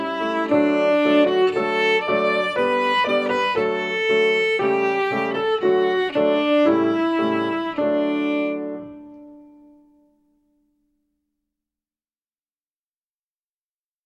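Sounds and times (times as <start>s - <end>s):
violin: 0.0s - 10.0s.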